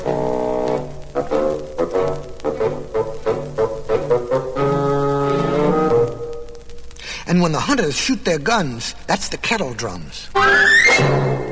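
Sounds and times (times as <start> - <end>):
low reedy bassoon playing a gruff melody: 0.0 - 6.5, 10.4 - 11.4
speech: 7.4 - 11.2.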